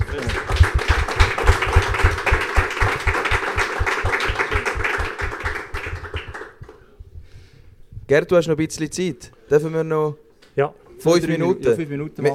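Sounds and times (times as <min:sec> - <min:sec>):
audience applause: 0:00.0 - 0:06.8
speech: 0:08.1 - 0:12.3.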